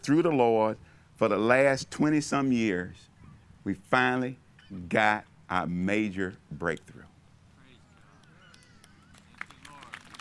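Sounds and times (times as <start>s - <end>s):
speech: 0.0s - 7.1s
polite courtesy clapping from audience: 8.5s - 10.2s.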